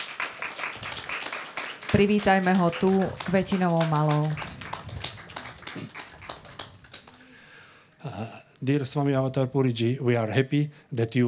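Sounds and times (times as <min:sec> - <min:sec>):
group applause greeting a visiting swami at an ashram in Bratislava: 0:00.0 - 0:07.6
speech: 0:01.9 - 0:04.5, 0:08.2 - 0:11.2.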